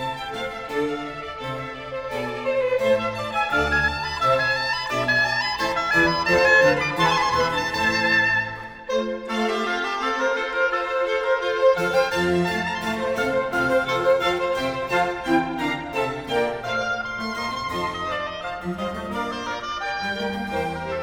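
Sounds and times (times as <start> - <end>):
oboe concerto in F major: 0.0 - 21.0.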